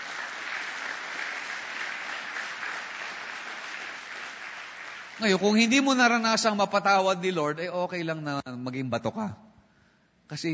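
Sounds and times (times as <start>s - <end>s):
church congregation applauding during worship: 0.0s - 6.6s
speech: 5.2s - 9.4s, 10.3s - 10.5s.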